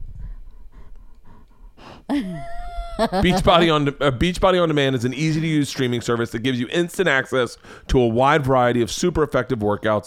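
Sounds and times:
animal sniffing the microphone: 0.0 - 2.1
laughter: 2.1 - 4.0
speech: 2.1 - 10.0.

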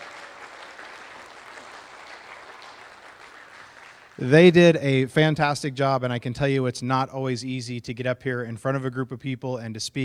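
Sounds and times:
audience applause: 0.0 - 4.4
speech: 4.2 - 10.0.

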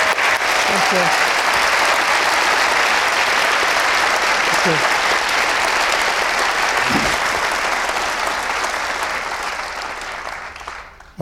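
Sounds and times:
audience applause welcoming Dr. Yellen and Professor Siegel: 0.0 - 11.2
speech: 0.7 - 1.3, 4.6 - 5.0.

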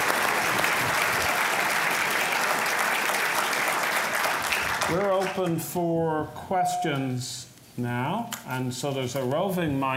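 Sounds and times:
audience applause: 0.0 - 5.4
speech: 4.9 - 9.9.

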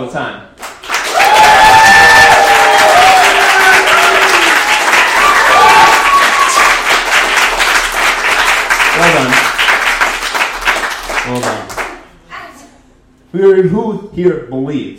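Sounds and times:
speech: 0.0 - 0.6, 13.4 - 14.9
audience applause: 0.6 - 12.0.

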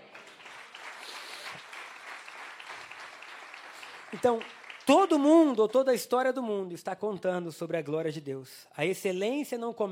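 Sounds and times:
audience applause: 0.0 - 5.8
speech: 4.1 - 9.9.

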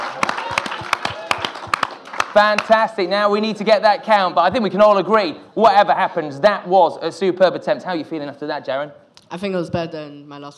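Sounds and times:
audience applause: 0.0 - 3.4
speech: 2.4 - 10.5.

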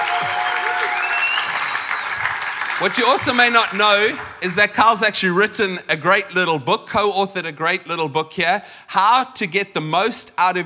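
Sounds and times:
audience applause: 0.0 - 4.4
speech: 2.8 - 10.6.

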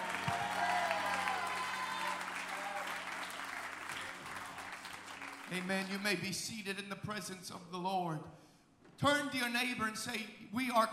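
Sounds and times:
audience shouting praise: 0.0 - 4.8
audience clapping: 0.0 - 6.3
speech: 5.5 - 8.4, 9.0 - 10.9.

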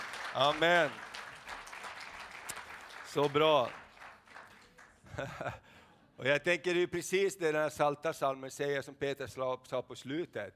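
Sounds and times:
audience applause: 0.0 - 5.3
speech: 0.4 - 1.0, 3.1 - 3.8, 5.2 - 10.5
laughter: 5.0 - 5.8.

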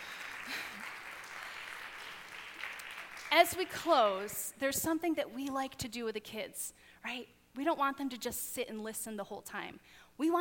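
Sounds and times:
audience clapping: 0.0 - 4.4
speech: 3.3 - 10.3.

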